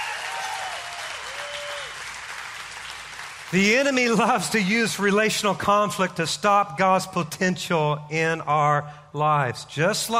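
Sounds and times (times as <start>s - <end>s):
audience applause: 0.0s - 4.5s
speech: 3.5s - 10.1s.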